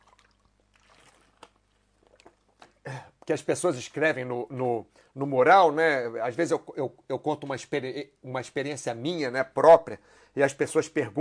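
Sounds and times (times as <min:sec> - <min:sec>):
sipping a drink of water: 0:00.0 - 0:03.3
speech: 0:02.9 - 0:11.1.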